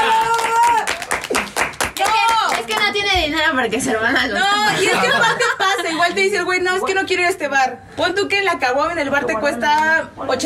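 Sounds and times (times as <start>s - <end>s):
audience applause and clapping: 0.0s - 2.9s
speech: 3.3s - 10.4s
laughter: 4.3s - 6.3s.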